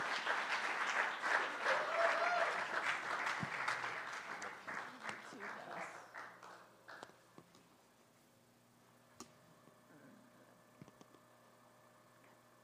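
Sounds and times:
audience applause for a team: 0.0 - 7.1.

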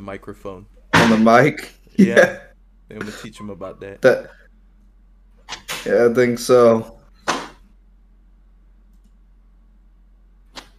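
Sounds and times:
speech: 0.0 - 4.4, 5.8 - 7.0
folk song: 0.9 - 1.5.

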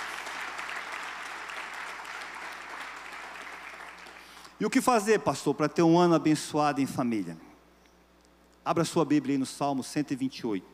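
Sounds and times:
audience applauding: 0.0 - 4.5
speech: 4.6 - 7.5, 8.7 - 10.7.

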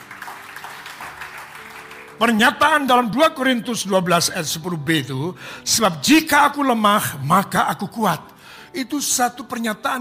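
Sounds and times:
audience clapping hands: 0.0 - 2.7
speech: 2.2 - 9.9.

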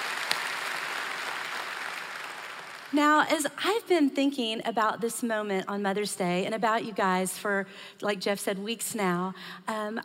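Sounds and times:
church congregation applauding at a Mother's Day service: 0.0 - 3.0
speech: 2.9 - 10.0.

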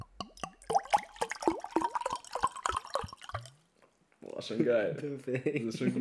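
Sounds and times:
person drinking water: 0.0 - 3.7
speech: 4.4 - 5.9.

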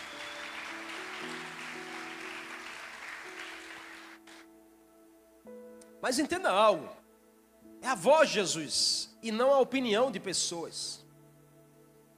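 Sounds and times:
audience applauding: 0.0 - 4.4
speech: 6.0 - 7.0, 7.8 - 11.0.

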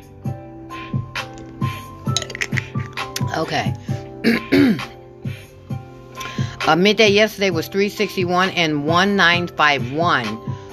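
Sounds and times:
light glassy clinks: 2.1 - 2.9
person drinking water in rhythmic gulps: 2.1 - 3.2
speech: 3.3 - 5.0, 6.7 - 10.5.

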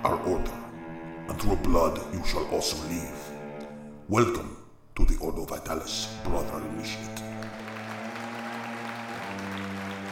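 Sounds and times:
speech: 1.4 - 3.4, 4.1 - 7.2
thunderous applause from an audience: 6.9 - 10.1.

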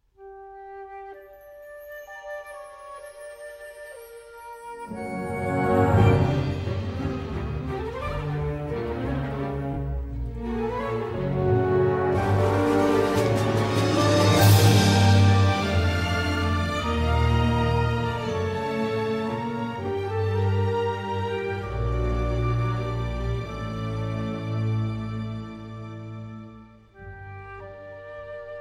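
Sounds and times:
instrumental film score cue built on the Hungarian scale: 0.0 - 28.5.

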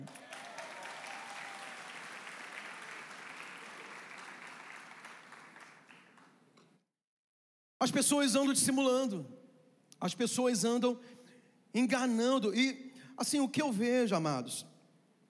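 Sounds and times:
audience applauding: 0.0 - 6.4
speech: 7.8 - 9.4, 10.0 - 14.7.

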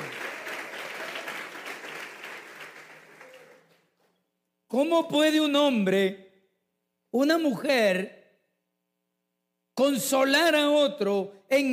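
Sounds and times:
loud clapping: 0.0 - 4.1
speech: 4.7 - 6.2, 7.1 - 8.2, 9.8 - 11.7.

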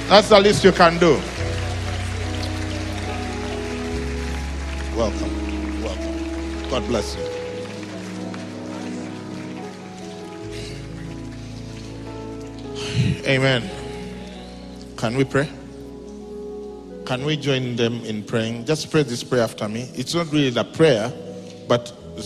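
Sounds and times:
audience clapping: 0.0 - 14.5
sustained low keyboard chords: 0.0 - 22.2
speech: 0.1 - 1.3, 5.0 - 5.4, 6.7 - 7.3, 13.2 - 13.8, 15.0 - 15.6, 17.1 - 22.2.

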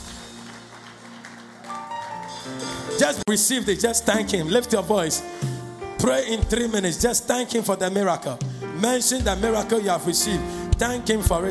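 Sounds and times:
audience clapping: 0.0 - 3.2
speech: 2.4 - 11.4.

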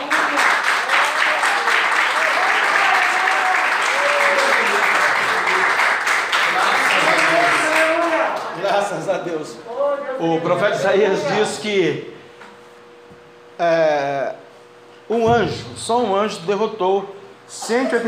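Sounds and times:
audience applause: 0.0 - 8.8
speech: 9.2 - 12.2, 13.6 - 14.4, 15.1 - 18.0.

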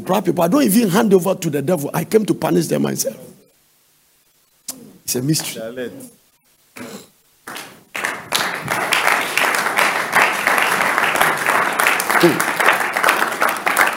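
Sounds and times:
speech: 0.0 - 3.3, 5.1 - 6.2, 12.2 - 12.5
audience clapping: 7.4 - 13.9.

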